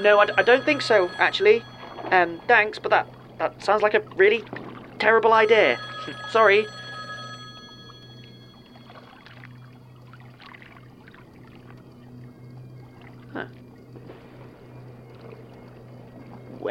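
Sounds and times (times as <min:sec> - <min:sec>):
speech: 0:00.0 - 0:06.8
telephone ringing with a bright tonal bell: 0:00.0 - 0:10.0
low steady hum: 0:00.0 - 0:16.6.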